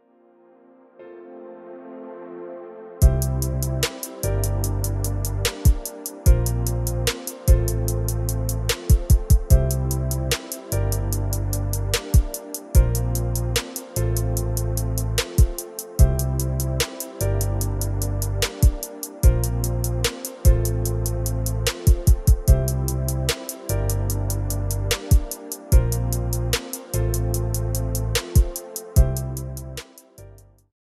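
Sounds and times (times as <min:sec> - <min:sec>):
instrumental music: 0:00.0 - 0:30.6.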